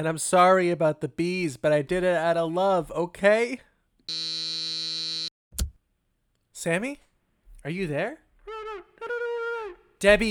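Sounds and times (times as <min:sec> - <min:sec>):
speech: 0:00.0 - 0:04.5, 0:06.6 - 0:08.2, 0:10.0 - 0:10.2
apartment intercom buzzer: 0:04.1 - 0:05.3.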